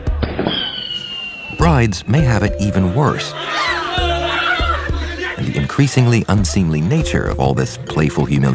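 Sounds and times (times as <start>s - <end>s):
firecrackers exploding: 0.2s - 1.6s
speech: 1.7s - 3.8s, 5.7s - 8.5s
laughter: 2.9s - 6.8s.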